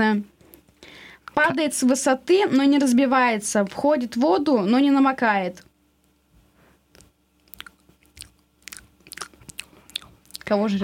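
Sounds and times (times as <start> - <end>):
speech: 0.0 - 0.3, 1.4 - 5.7, 10.5 - 10.8
person chewing and biting food: 6.9 - 10.6.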